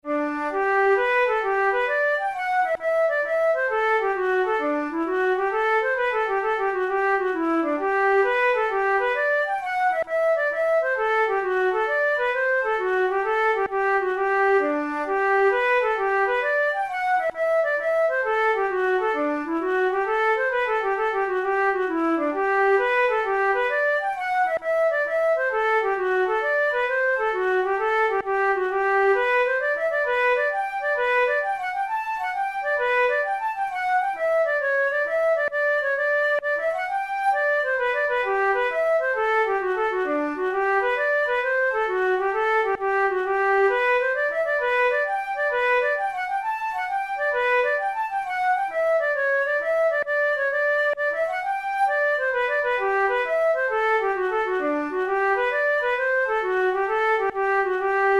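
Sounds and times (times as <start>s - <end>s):
hornpipe flute tunes: 0.0s - 58.1s.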